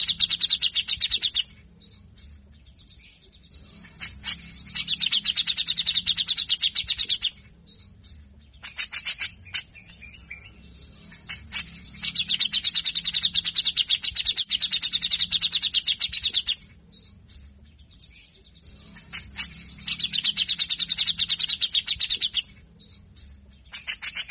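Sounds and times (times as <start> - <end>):
grey-cheeked bulbul rattling song: 0.0 - 24.2.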